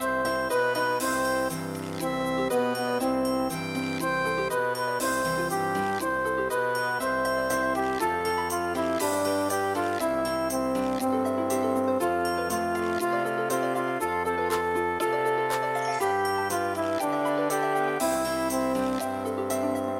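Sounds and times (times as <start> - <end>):
nursery rhyme song: 0.0 - 19.9.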